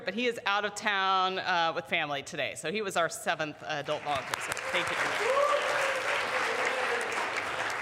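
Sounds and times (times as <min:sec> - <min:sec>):
speech: 0:00.1 - 0:05.8
audience round of applause: 0:03.9 - 0:07.7.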